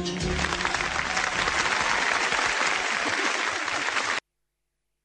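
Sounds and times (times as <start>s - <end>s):
applause: 0.2s - 4.2s.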